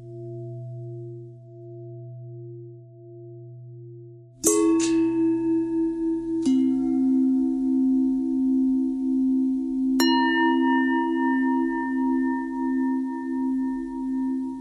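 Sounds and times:
long pentatonic bells: 4.4 - 14.5.

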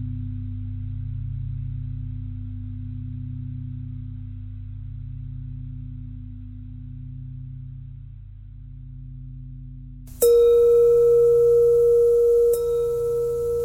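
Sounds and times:
bells ringing: 10.2 - 13.6.

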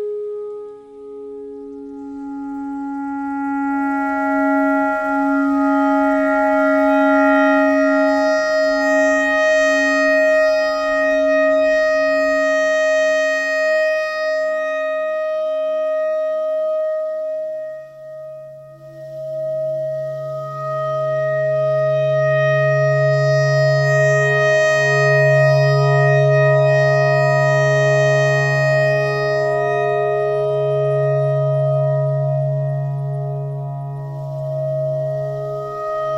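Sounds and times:
clarinet playing pentatonic notes: 0.0 - 36.1.

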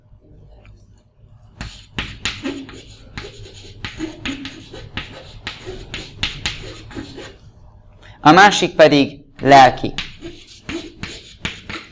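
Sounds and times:
writing scratches: 1.6 - 7.4, 10.0 - 11.9
speech: 8.2 - 10.1.

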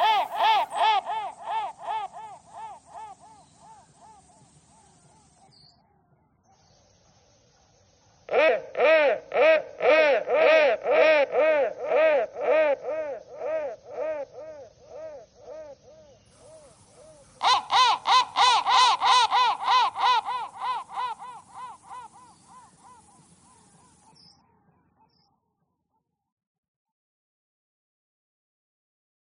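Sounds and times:
crow thread noise: 0.0 - 5.6, 8.3 - 24.2.

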